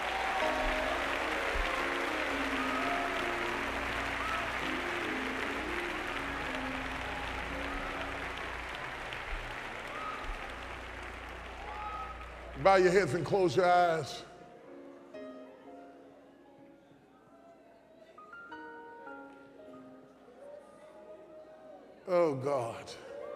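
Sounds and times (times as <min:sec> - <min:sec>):
congregation clapping hands in church: 0:00.0 - 0:14.2
speech: 0:12.6 - 0:14.3, 0:22.4 - 0:23.0.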